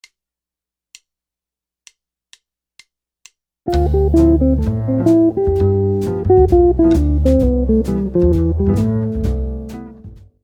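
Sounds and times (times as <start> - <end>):
jazz guitar lick: 3.7 - 10.2.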